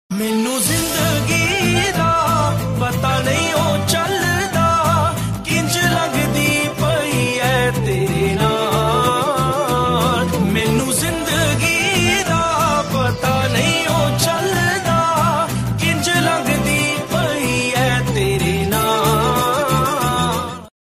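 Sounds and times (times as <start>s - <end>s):
Punjabi music: 0.1s - 20.7s.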